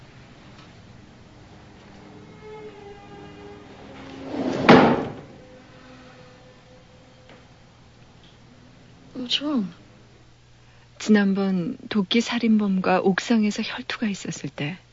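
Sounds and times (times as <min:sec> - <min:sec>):
low steady hum: 0:00.0 - 0:14.9
drawer sliding open with a short scraping rumble: 0:04.0 - 0:05.4
speech: 0:09.3 - 0:09.8, 0:11.0 - 0:14.8.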